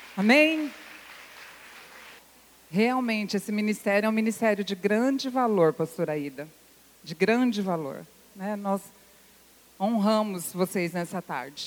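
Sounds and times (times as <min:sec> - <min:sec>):
audience applause: 0:00.0 - 0:02.2
speech: 0:00.2 - 0:00.8, 0:02.7 - 0:09.0, 0:09.8 - 0:11.6.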